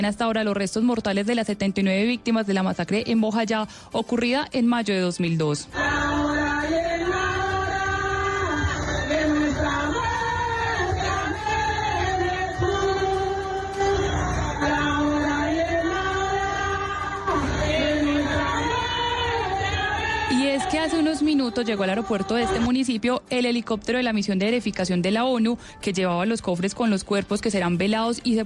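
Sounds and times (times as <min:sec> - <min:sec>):
speech: 0:00.0 - 0:06.8, 0:20.8 - 0:28.4
villagers of Vigía del Fuerte singing mourning chants: 0:05.8 - 0:22.6.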